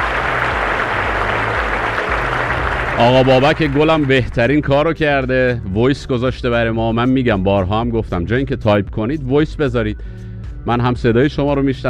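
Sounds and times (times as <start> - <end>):
applause: 0.0 - 4.6
speech: 3.0 - 11.8.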